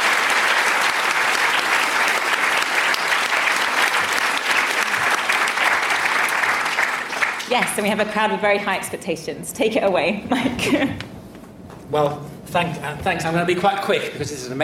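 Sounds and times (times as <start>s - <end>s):
large audience applause: 0.0s - 8.1s
speech: 7.5s - 11.1s, 11.9s - 14.6s.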